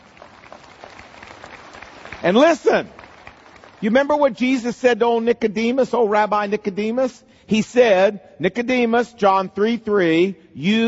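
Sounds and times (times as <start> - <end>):
audience applause: 0.0 - 4.2
speech: 2.2 - 3.0, 3.8 - 10.8.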